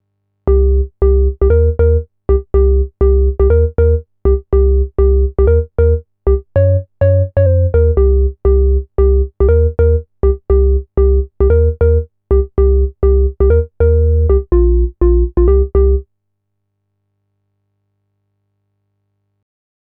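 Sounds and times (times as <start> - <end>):
Pro-One organ sound: 0.5 - 16.0.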